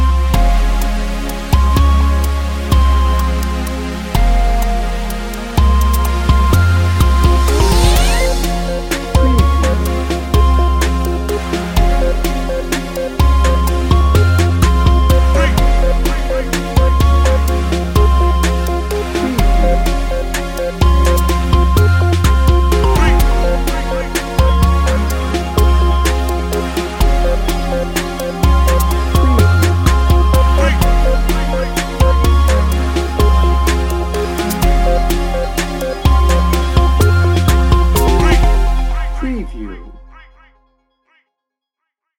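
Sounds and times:
smooth chill music: 0.0s - 40.5s.

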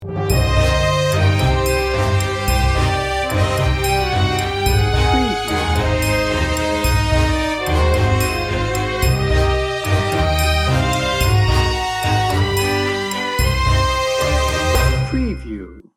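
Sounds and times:
tango music: 0.0s - 15.4s.

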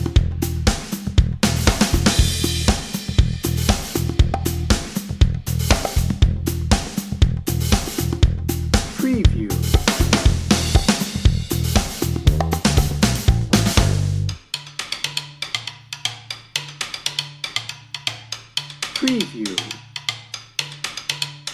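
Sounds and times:
drum and bass music: 0.0s - 14.4s, 19.0s - 19.8s.

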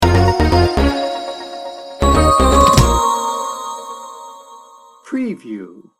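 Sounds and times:
adventure beat sting bumper: 0.0s - 4.6s.

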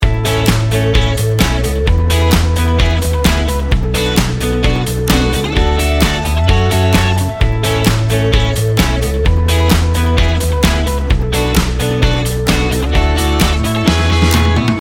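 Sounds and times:
inspirational music loop: 0.3s - 14.7s.

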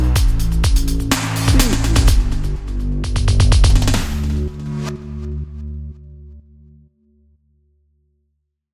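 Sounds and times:
dreamy drum and bass music: 0.0s - 5.3s.

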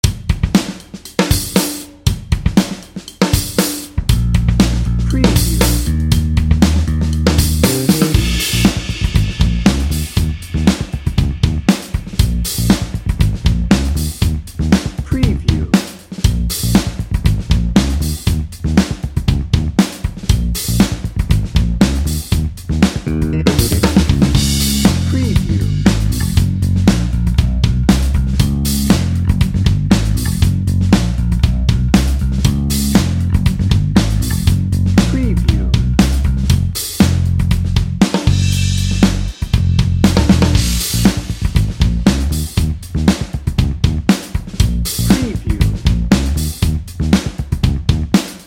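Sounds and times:
funky cheerful music: 0.0s - 48.4s.

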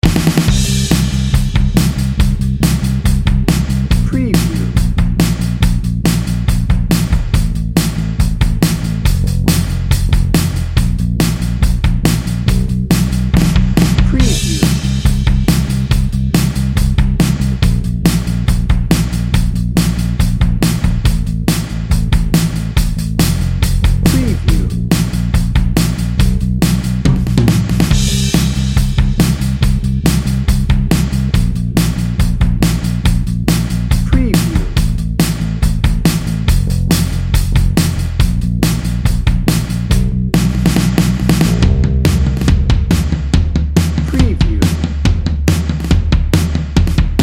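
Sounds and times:
drum and bass music: 0.0s - 47.2s.

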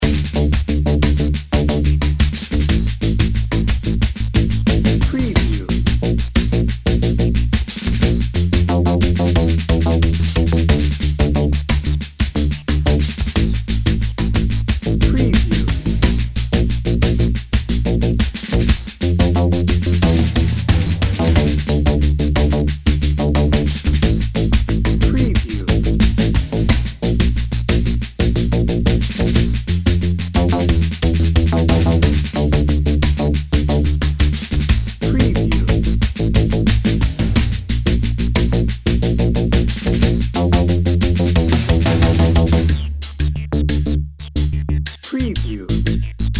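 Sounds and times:
somber drum and bass music: 0.0s - 46.3s.

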